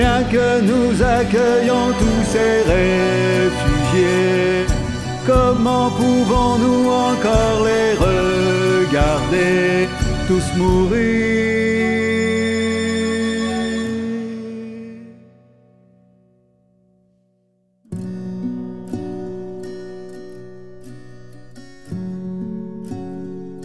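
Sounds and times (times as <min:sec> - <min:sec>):
instrumental music with choirs: 0:00.0 - 0:15.2.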